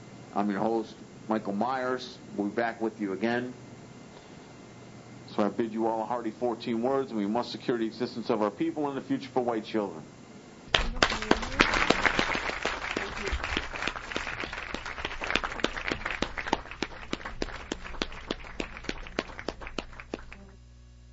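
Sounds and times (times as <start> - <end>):
speech: 0.4 - 3.6, 5.4 - 10.2
applause: 10.7 - 20.6.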